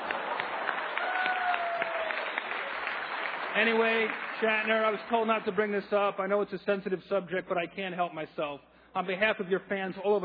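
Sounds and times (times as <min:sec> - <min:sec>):
audience applause: 0:00.0 - 0:05.3
speech: 0:03.6 - 0:10.2.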